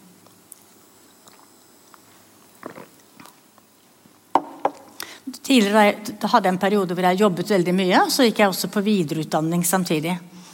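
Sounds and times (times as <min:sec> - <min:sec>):
person sipping a little water: 0:00.2 - 0:03.6
speech: 0:05.5 - 0:10.4.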